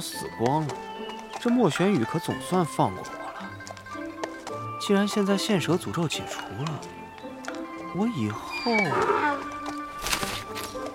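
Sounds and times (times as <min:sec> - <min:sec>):
speech: 0:00.0 - 0:03.2, 0:04.8 - 0:07.0, 0:07.9 - 0:09.3
donkey braying: 0:00.8 - 0:05.4, 0:07.6 - 0:10.0.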